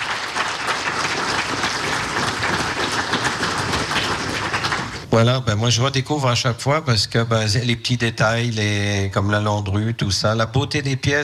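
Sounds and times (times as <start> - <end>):
audience applause: 0.0 - 5.1
speech: 5.2 - 11.2.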